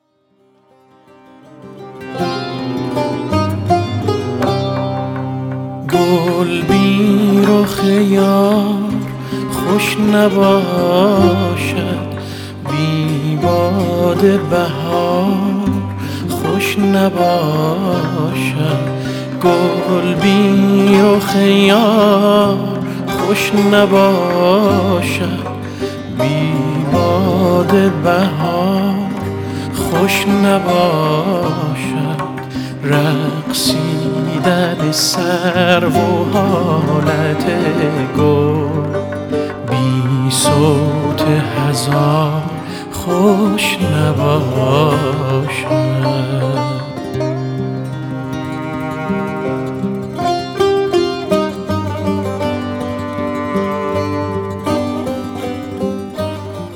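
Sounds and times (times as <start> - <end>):
vocals: 1.2 - 56.7.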